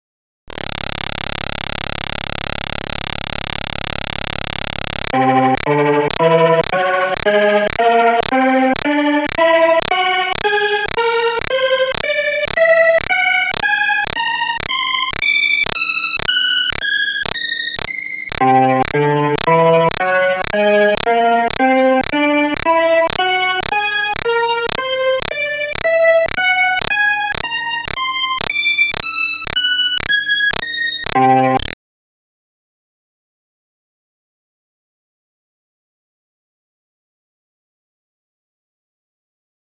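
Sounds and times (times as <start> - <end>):
Hammond B3 organ: 5.0 - 31.7.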